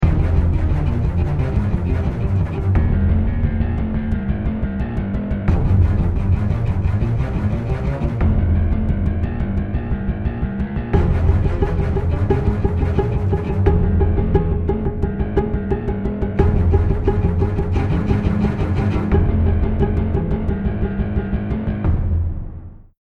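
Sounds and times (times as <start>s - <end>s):
music: 0.0s - 22.9s.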